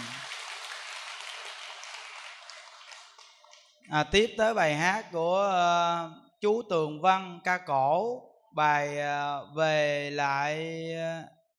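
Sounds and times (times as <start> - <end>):
crowd clapping: 0.0 - 3.7
speech: 3.9 - 11.4.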